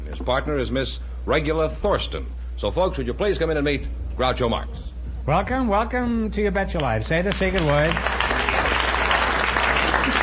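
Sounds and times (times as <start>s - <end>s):
speech: 0.1s - 8.2s
studio audience applause: 7.2s - 10.2s.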